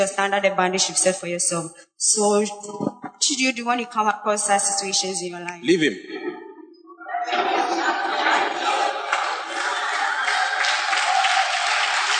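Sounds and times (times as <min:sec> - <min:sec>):
speech: 0:00.0 - 0:06.2
laughter: 0:05.8 - 0:12.1
crowd cheering: 0:07.1 - 0:12.1
audience applause: 0:07.3 - 0:12.1.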